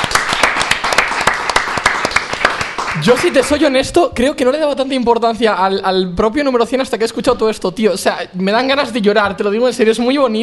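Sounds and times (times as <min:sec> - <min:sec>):
small group applauding: 0:00.0 - 0:03.8
speech: 0:03.0 - 0:10.4.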